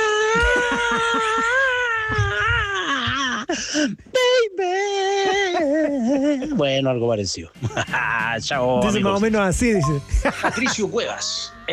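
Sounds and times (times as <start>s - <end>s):
voice imitating a rock singer's memorable scream: 0.0s - 3.5s
laughter: 0.2s - 3.5s, 5.1s - 6.6s, 7.5s - 9.3s, 10.1s - 11.2s
speech: 0.4s - 2.2s, 3.8s - 5.0s, 5.6s - 11.7s.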